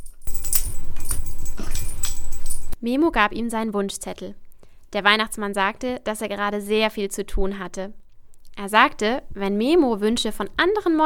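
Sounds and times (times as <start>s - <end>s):
small bell jingling on a belt: 0.0s - 2.8s
speech: 2.8s - 8.0s, 8.6s - 11.0s.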